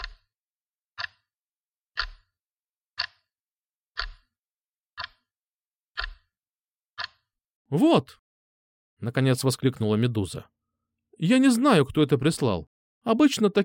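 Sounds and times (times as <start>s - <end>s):
wall clock in a school office ticking: 0.0s - 8.2s
speech: 7.7s - 8.2s, 9.0s - 10.5s, 11.2s - 13.6s.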